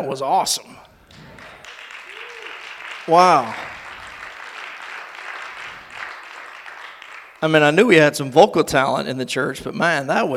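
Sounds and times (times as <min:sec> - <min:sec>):
speech: 0:00.0 - 0:01.2, 0:03.1 - 0:03.7, 0:07.4 - 0:10.3
audience applause: 0:01.1 - 0:07.8.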